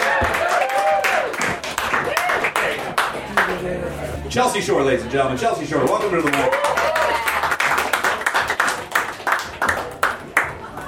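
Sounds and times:
audience applause: 0.0 - 3.6, 5.9 - 10.6
speech: 4.4 - 7.2.

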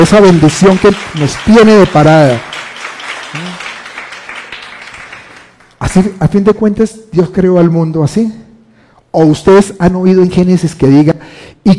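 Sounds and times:
speech: 0.0 - 2.5, 5.8 - 8.4, 9.1 - 11.7
audience applause: 0.0 - 5.8.

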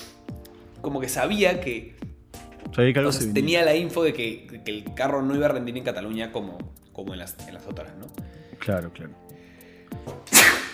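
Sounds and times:
speech: 0.8 - 2.0, 2.7 - 9.3
sneeze: 10.3 - 10.7.

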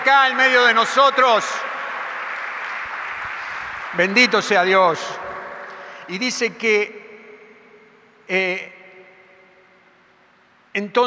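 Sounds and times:
speech: 0.0 - 1.7, 3.9 - 5.2, 6.1 - 7.0, 8.3 - 8.8, 10.8 - 11.0
audience applause: 0.0 - 5.8.

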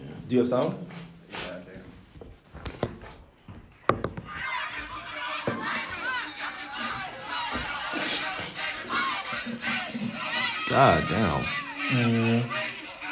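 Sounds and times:
speech: 0.3 - 1.5, 10.7 - 12.6
live concert crowd cheering and screaming: 4.3 - 12.9.

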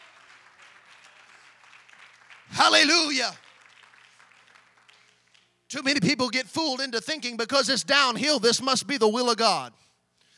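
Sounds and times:
audience clapping: 0.0 - 6.1
speech: 2.5 - 3.4, 5.7 - 9.9.

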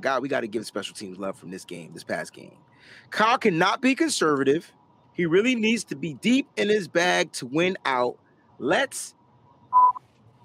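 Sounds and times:
speech: 0.0 - 9.9
censor beeps: 9.7 - 10.0.

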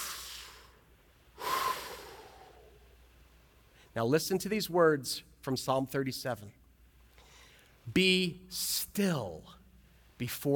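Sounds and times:
deep breath: 0.0 - 2.9, 7.2 - 7.8
speech: 4.0 - 6.6, 7.9 - 9.6, 10.2 - 10.5.

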